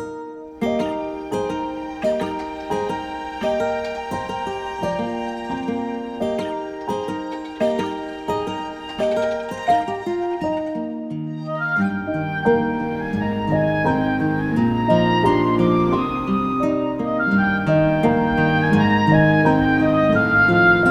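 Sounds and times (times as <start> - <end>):
fiddle: 0.6 - 20.8.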